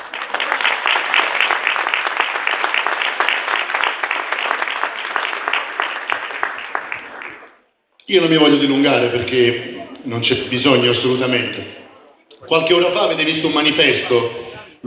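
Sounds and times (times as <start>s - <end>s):
crowd applause: 0.0s - 7.6s
speech: 8.1s - 11.8s, 12.5s - 14.8s.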